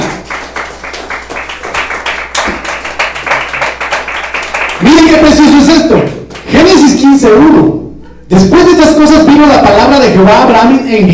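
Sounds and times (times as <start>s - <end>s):
audience clapping hands: 0.0s - 6.7s
speech: 4.8s - 11.1s.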